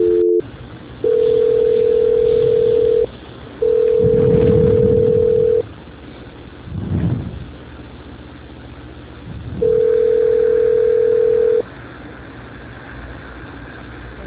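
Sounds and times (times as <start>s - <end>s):
telephone transfer tones while on hold: 0.0s - 0.4s, 1.0s - 5.6s, 9.6s - 11.6s.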